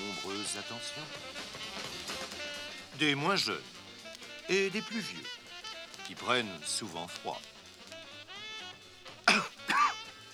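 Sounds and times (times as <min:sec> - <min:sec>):
speech: 0:00.6 - 0:01.6, 0:03.0 - 0:03.8, 0:04.5 - 0:05.4, 0:06.1 - 0:07.5
raspy coughs: 0:09.2 - 0:10.2.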